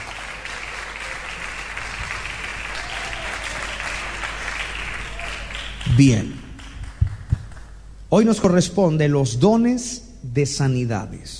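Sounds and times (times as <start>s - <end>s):
audience applauding loudly: 0.0s - 7.8s
speech: 6.0s - 6.4s, 8.1s - 11.3s.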